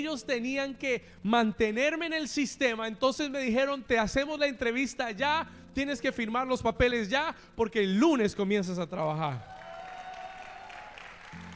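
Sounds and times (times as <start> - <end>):
speech: 0.0 - 9.5
audience applause: 9.3 - 11.5.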